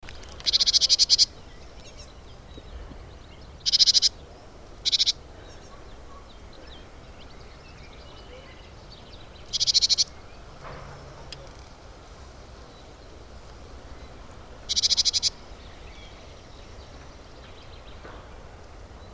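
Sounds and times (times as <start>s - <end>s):
background hiss: 0.0s - 19.1s
great tit call: 0.1s - 1.3s, 3.6s - 4.1s, 4.8s - 5.2s, 9.4s - 10.2s, 14.6s - 15.4s.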